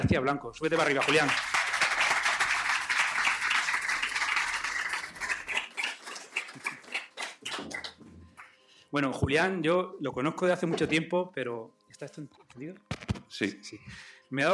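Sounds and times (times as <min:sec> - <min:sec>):
speech: 0:00.0 - 0:01.6, 0:08.9 - 0:14.5
live audience applause: 0:00.8 - 0:08.0.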